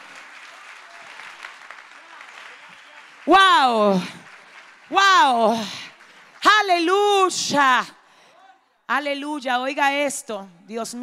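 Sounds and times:
audience applauding: 0.0s - 7.4s
speech: 3.2s - 4.2s, 4.9s - 5.8s, 6.6s - 8.0s, 8.9s - 11.0s.

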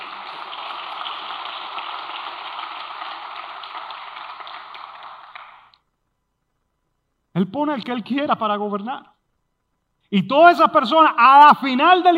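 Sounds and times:
audience applause: 0.0s - 5.8s
speech: 7.4s - 9.1s, 10.1s - 12.1s.

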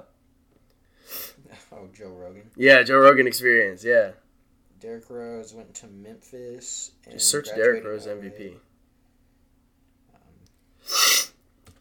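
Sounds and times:
person sniffling from allergies: 0.9s - 1.5s, 10.8s - 11.4s
speech: 1.8s - 4.2s, 4.8s - 8.7s.

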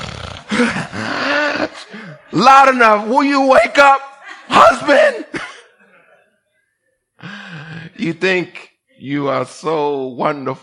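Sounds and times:
voice imitating loud snoring: 0.0s - 0.9s
speech: 0.5s - 5.5s, 8.0s - 10.6s.

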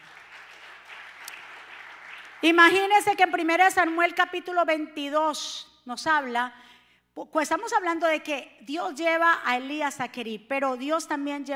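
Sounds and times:
audience applause: 0.0s - 2.4s
speech: 2.4s - 11.5s.

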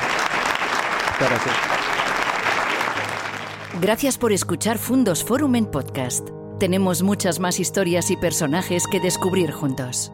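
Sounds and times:
audience applause: 0.0s - 4.0s
speech: 1.2s - 2.0s, 3.7s - 10.1s.

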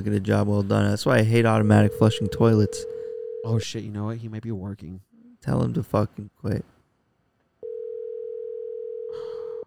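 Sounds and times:
speech: 0.0s - 6.7s
phone call ringing tone: 1.8s - 3.6s, 7.6s - 9.6s.

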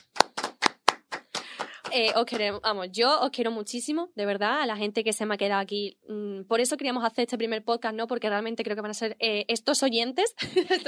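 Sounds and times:
hand clapping applause: 0.0s - 2.6s
speech: 2.0s - 10.8s
laughter: 10.4s - 10.8s.

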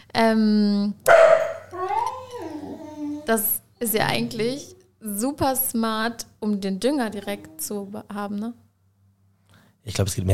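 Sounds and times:
speech: 0.2s - 1.2s, 3.3s - 8.6s, 9.8s - 10.3s
dachshund yowling and barking: 1.1s - 3.5s.

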